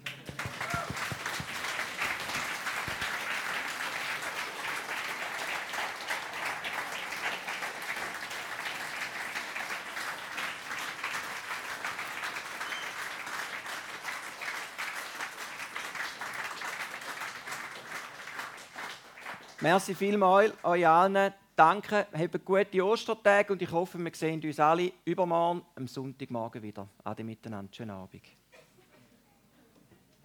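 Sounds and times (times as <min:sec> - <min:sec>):
crowd applauding: 0:00.0 - 0:19.8
speech: 0:19.6 - 0:28.4.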